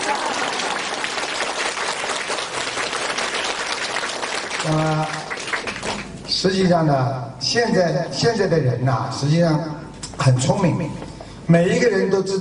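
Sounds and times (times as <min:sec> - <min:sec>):
audience applause: 0:00.0 - 0:06.2
speech: 0:04.6 - 0:05.2, 0:06.4 - 0:12.3.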